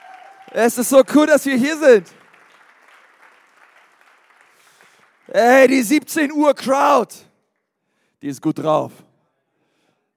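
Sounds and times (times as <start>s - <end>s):
audience applause: 0.0s - 6.0s
speech: 0.5s - 2.2s, 5.4s - 7.3s, 8.2s - 9.1s.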